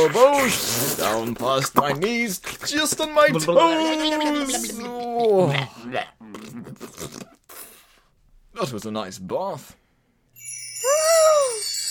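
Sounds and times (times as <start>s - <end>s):
speech: 0.0s - 7.1s, 8.6s - 9.8s
wind chimes ringing: 10.4s - 11.8s.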